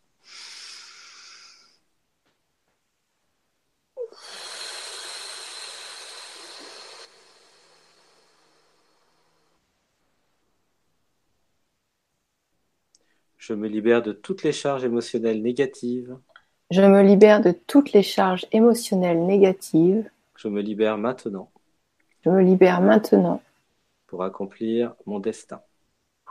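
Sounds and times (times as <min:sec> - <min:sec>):
deep breath in and out: 0:00.2 - 0:01.9, 0:04.0 - 0:09.8
speech: 0:13.4 - 0:21.6, 0:22.2 - 0:23.5, 0:24.1 - 0:25.7.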